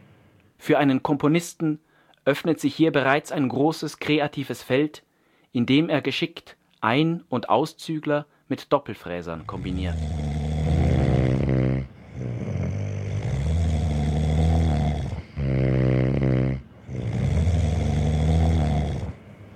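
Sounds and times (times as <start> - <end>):
speech: 0.6 - 10.2
loud snoring during sleep: 9.3 - 19.5.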